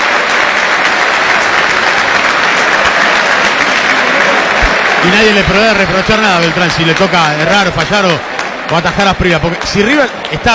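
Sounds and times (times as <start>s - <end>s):
stadium crowd applauding before penalty kick: 0.0s - 10.5s
speech: 5.0s - 10.5s.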